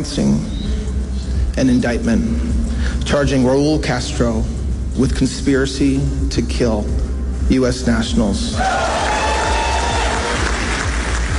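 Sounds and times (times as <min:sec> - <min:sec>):
speech: 0:00.0 - 0:00.6, 0:01.6 - 0:09.1
audience applause: 0:08.6 - 0:11.3.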